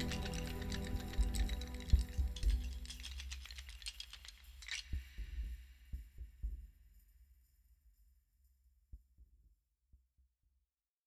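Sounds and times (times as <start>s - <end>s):
background music: 0.0s - 3.6s.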